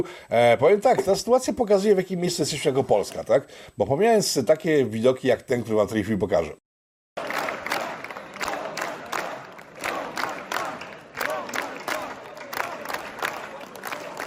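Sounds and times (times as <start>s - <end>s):
speech: 0.0s - 6.6s
parliament members chanting Donald Trump in the Polish parliament: 7.2s - 14.2s
parliament members shouting: 7.2s - 14.2s.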